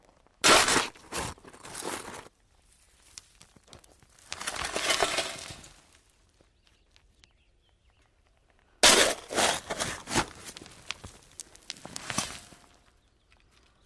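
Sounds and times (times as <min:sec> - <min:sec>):
shovel digging dirt slowly: 0:00.4 - 0:02.3, 0:04.4 - 0:05.7, 0:08.8 - 0:10.7, 0:11.8 - 0:12.7.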